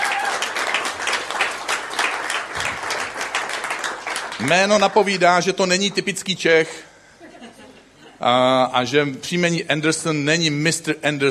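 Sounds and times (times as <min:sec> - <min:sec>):
audience applause: 0:00.0 - 0:06.1
speech: 0:04.4 - 0:06.9, 0:08.2 - 0:11.2
laughter: 0:07.2 - 0:08.3.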